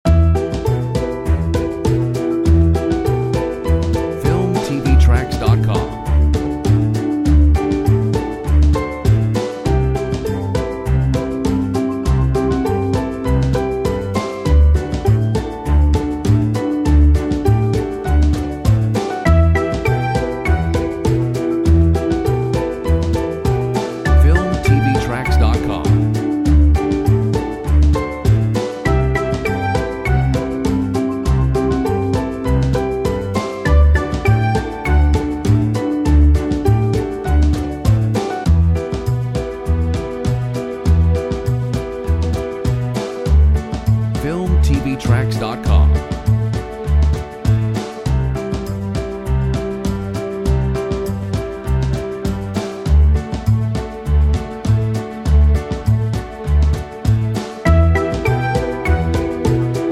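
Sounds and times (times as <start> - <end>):
quirky ballad: 0.1 - 59.9.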